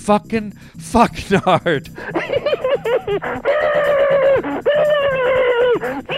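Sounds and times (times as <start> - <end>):
speech: 0.0 - 4.9
laughter: 1.3 - 6.1
voice imitating chipmunk noises: 4.8 - 6.1.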